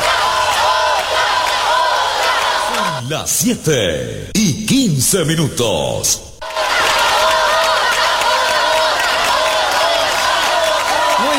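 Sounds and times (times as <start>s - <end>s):
crowd chanting otra for an encore: 0.0s - 3.1s, 6.4s - 11.3s
speech: 3.0s - 6.3s.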